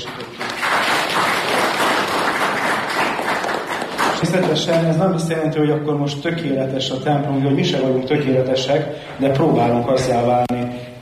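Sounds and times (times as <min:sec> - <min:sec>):
church congregation applauding: 0:00.0 - 0:05.2
speech: 0:04.2 - 0:10.9.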